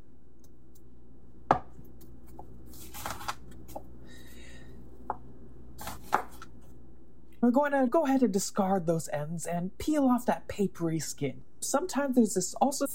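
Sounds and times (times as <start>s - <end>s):
knife slicing an onion across the roots: 1.5s - 3.8s, 5.8s - 6.6s
speech: 7.4s - 12.9s.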